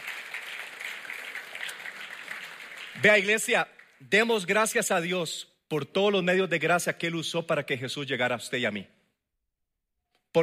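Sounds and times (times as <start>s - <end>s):
church congregation applauding: 0.0s - 4.5s
speech: 3.0s - 9.0s.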